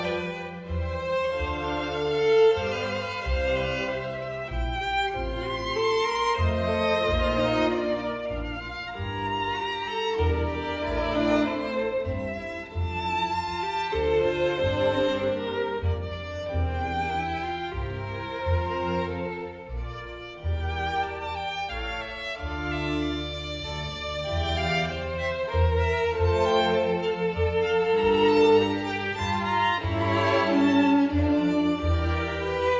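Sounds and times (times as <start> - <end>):
two violins playing a concerto in D minor: 0.0 - 32.7.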